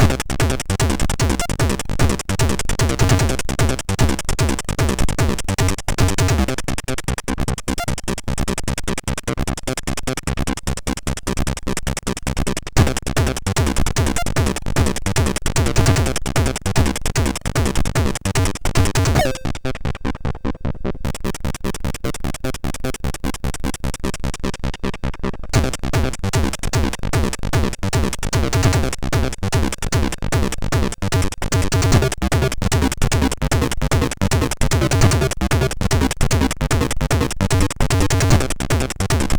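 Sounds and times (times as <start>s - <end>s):
techno rock chiptune on SID MOS6581R3: 0.0s - 39.3s.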